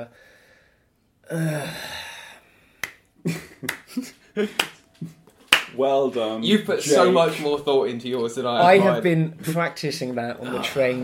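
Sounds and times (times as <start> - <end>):
speech: 0.0 - 0.4, 1.3 - 2.0, 3.2 - 5.2, 5.8 - 11.0
long breathy sigh: 0.1 - 2.7
slow hand claps: 2.8 - 5.8.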